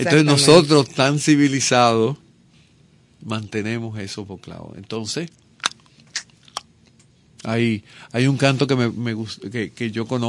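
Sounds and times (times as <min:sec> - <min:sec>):
speech: 0:00.0 - 0:02.2, 0:03.2 - 0:05.4, 0:07.4 - 0:10.2
tongue clicks: 0:05.6 - 0:06.7.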